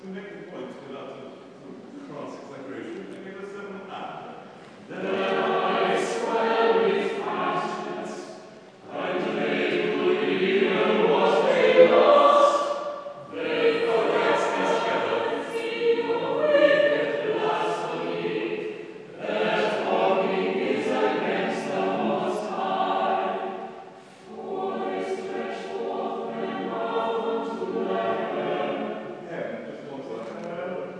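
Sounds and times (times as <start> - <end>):
choir practising: 4.8 - 29.6.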